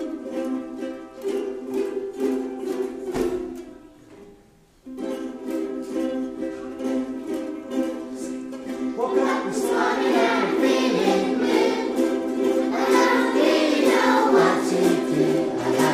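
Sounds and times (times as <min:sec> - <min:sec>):
ukulele blues: 0:00.0 - 0:15.9.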